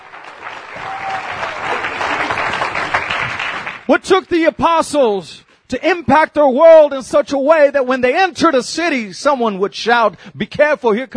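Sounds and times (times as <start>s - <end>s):
audience clapping hands: 0.0s - 3.9s
speech: 3.9s - 11.1s.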